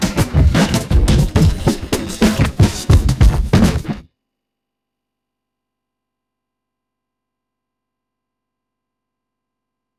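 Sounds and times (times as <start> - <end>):
drum breaks: 0.0 - 4.1.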